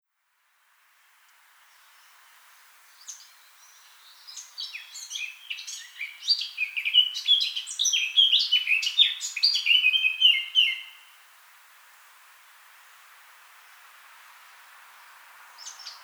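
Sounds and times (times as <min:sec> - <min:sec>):
Eurasian blackcap Sylvia atricapilla giving warbled phrases: 0:03.0 - 0:11.2, 0:15.5 - 0:16.0.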